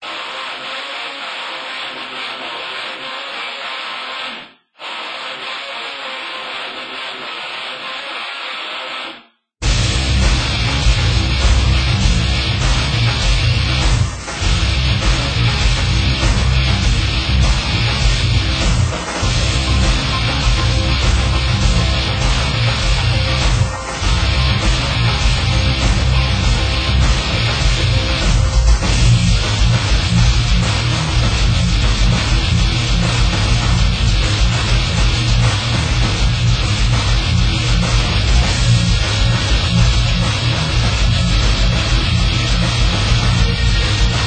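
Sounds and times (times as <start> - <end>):
ambient music: 9.6 - 44.2.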